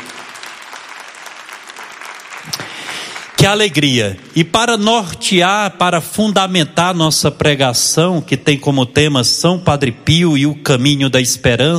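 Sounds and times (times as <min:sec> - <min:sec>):
crowd applause: 0:00.0 - 0:04.4
speech: 0:03.4 - 0:11.7.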